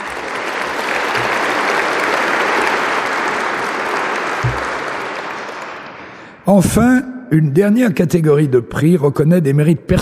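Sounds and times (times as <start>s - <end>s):
audience applause: 0.0s - 6.4s
speech: 6.5s - 10.0s.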